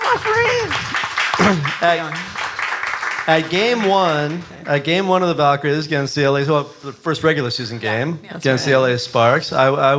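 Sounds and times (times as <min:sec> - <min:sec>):
audience clapping: 0:00.0 - 0:05.6
speech: 0:01.5 - 0:02.4, 0:03.2 - 0:09.9.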